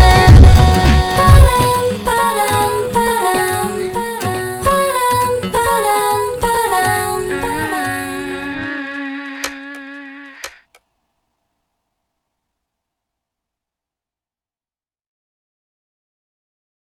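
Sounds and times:
slow reverb effect: 0.0s - 10.0s.

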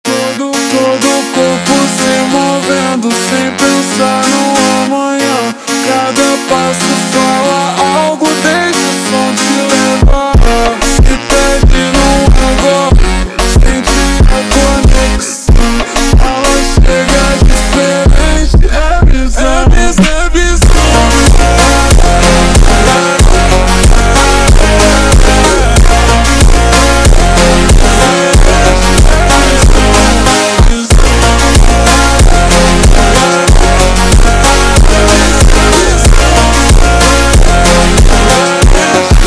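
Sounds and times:
slowed funk music: 0.1s - 39.2s.

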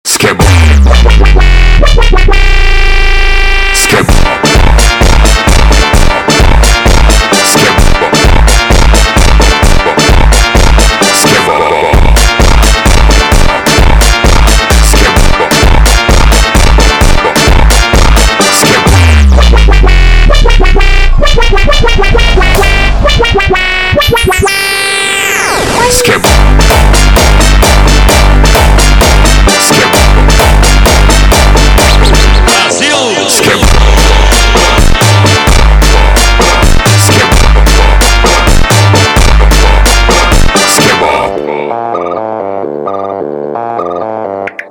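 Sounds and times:
funk music: 0.0s - 44.7s.

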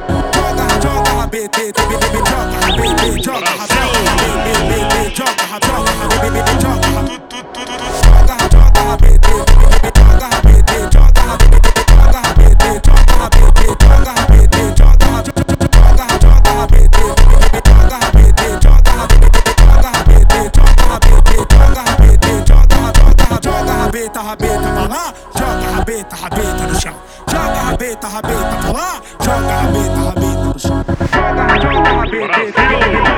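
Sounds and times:
slowed funk music: 0.1s - 7.1s, 7.9s - 23.5s, 29.3s - 33.1s.

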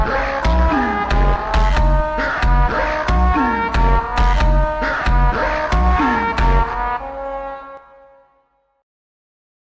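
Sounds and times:
super slowed funk with reverb: 0.0s - 7.8s.

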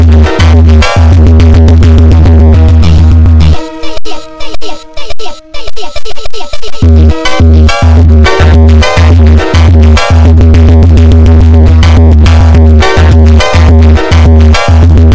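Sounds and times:
slow funk superbass with reverb: 0.0s - 3.6s, 6.8s - 15.1s.

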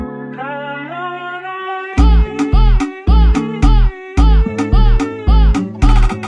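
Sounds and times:
slowed funk music: 2.0s - 6.2s.

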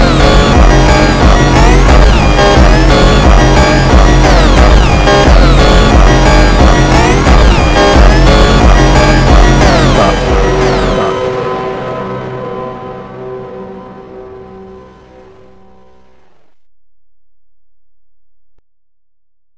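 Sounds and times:
slowed funk with reverb: 0.0s - 14.7s.

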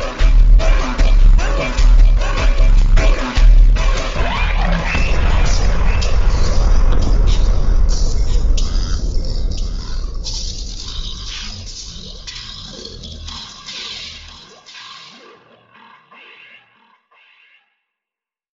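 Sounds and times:
deep flanger echo: 0.0s - 13.4s.

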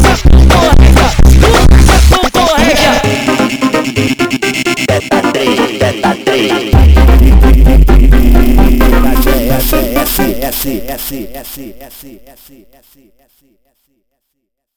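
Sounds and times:
funk music: 0.0s - 11.1s.

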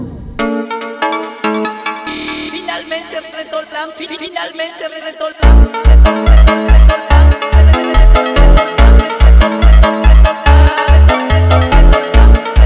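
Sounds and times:
sped up funk music: 0.4s - 3.2s, 5.5s - 12.6s.

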